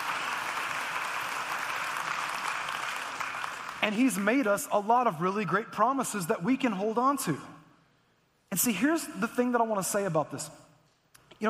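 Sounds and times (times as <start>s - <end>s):
audience clapping: 0.0s - 4.5s
speech: 3.8s - 7.5s, 8.6s - 10.6s.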